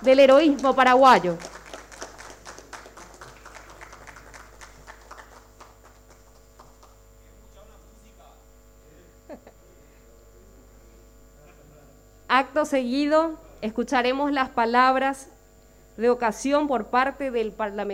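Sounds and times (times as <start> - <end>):
speech: 0.0 - 1.5, 12.6 - 15.3, 16.0 - 17.9
audience applause: 0.0 - 7.0
low electrical hum: 0.0 - 17.9.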